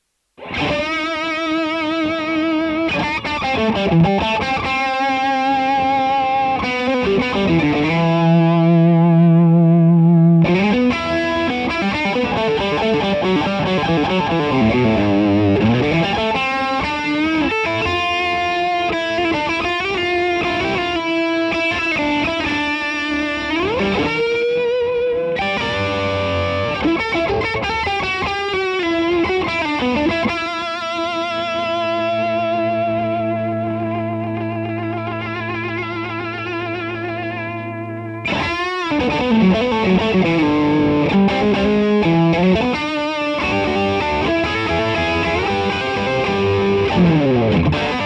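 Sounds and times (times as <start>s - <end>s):
Telecaster high-gain guitar recorded with MD421: 0.4s - 48.0s.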